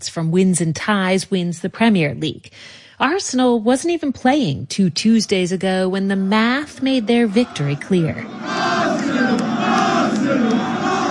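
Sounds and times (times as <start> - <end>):
speech: 0.0 - 9.4
huge football crowd roaring and chanting in unison: 6.8 - 11.0.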